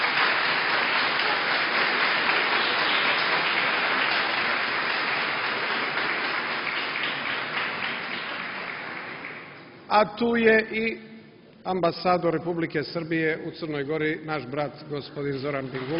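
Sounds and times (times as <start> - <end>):
audience applause welcoming a guest: 0.0 - 9.8, 15.6 - 15.9
speech: 9.9 - 15.9.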